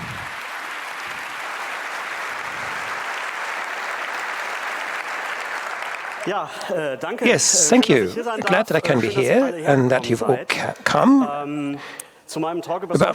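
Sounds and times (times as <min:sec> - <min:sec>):
applause: 0:00.0 - 0:08.9
speech: 0:06.2 - 0:13.1.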